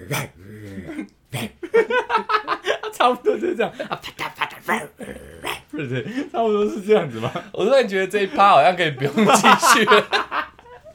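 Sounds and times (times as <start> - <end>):
person imitating a wolf: 0.0 - 1.6, 3.9 - 5.8
speech: 0.1 - 0.7, 3.0 - 5.1, 5.8 - 10.2
laughter: 0.8 - 5.0, 5.6 - 10.9.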